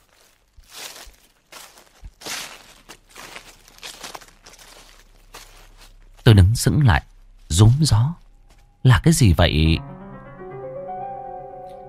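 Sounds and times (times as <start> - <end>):
rustling in a bush: 0.0 - 6.3
speech: 6.6 - 8.2, 8.8 - 9.9.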